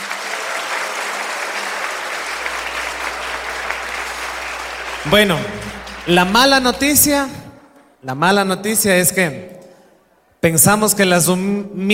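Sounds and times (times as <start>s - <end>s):
strong sustained audience applause: 0.0s - 7.3s
low hum: 1.6s - 8.0s
speech: 5.0s - 7.4s, 8.0s - 9.5s, 10.4s - 11.9s.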